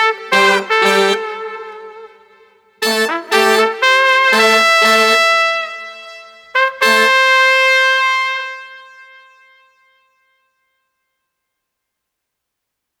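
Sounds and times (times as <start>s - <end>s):
brass jazz party music without drums: 0.0s - 2.1s, 2.8s - 5.7s, 6.6s - 7.8s.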